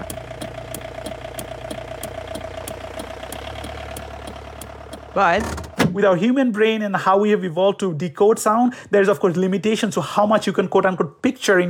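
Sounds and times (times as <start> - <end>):
car motor running: 0.0 - 6.0
speech: 5.2 - 11.6.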